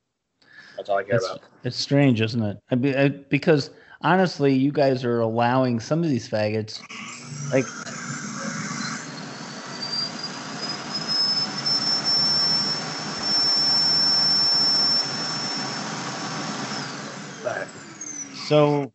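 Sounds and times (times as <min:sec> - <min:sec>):
speech: 0:00.8 - 0:08.0, 0:18.5 - 0:18.9
vacuum cleaner running: 0:06.8 - 0:18.8.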